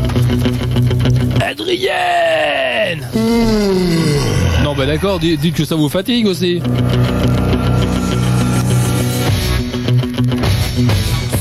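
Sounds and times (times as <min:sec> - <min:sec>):
rock film theme song: 0:00.0 - 0:11.3
speech: 0:01.5 - 0:08.2, 0:10.8 - 0:11.3.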